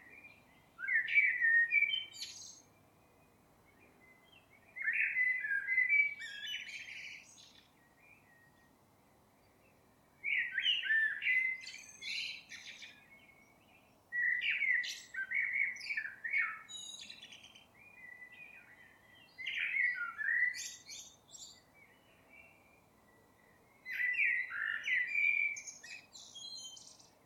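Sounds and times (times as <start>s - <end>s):
common blackbird singing: 0.0s - 2.8s, 3.7s - 8.7s, 10.2s - 27.2s.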